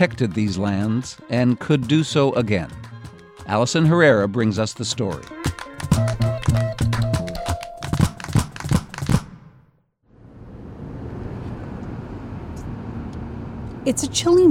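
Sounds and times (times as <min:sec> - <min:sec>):
speech: 0:00.0 - 0:02.9, 0:03.5 - 0:06.2, 0:13.9 - 0:14.4
rhythmic music: 0:00.0 - 0:09.4
car driving with the windows rolled down: 0:10.1 - 0:14.4.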